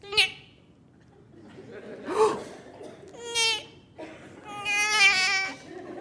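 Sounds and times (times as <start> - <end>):
laughter: 1.1 - 2.8, 5.5 - 6.0
voice imitating newborn baby's first cry: 3.2 - 3.8, 4.4 - 5.7.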